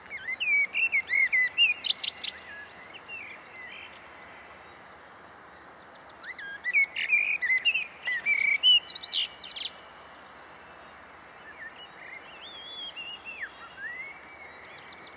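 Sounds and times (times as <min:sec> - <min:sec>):
Eurasian blackbird Turdus merula singing fluty warbled whistles: 0:00.1 - 0:04.0, 0:06.0 - 0:09.8, 0:11.5 - 0:15.1.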